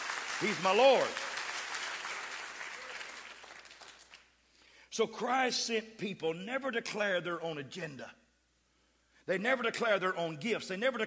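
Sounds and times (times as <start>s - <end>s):
audience clapping: 0.0s - 4.3s
speech: 0.4s - 1.2s, 5.0s - 8.2s, 9.3s - 11.0s.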